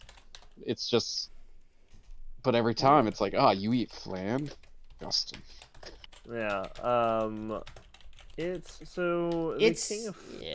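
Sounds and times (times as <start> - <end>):
keyboard typing: 0.0 - 0.6, 2.9 - 9.6
speech: 0.6 - 1.3, 2.4 - 7.8, 8.4 - 10.5.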